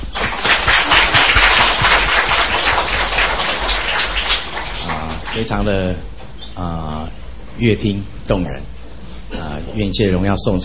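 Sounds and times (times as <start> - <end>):
crowd applauding: 0.0 - 5.7
speech: 5.4 - 8.8, 9.4 - 10.6.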